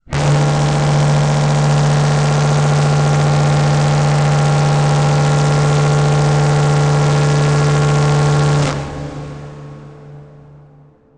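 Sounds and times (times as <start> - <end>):
long dark title transition stab: 0.0 - 11.1.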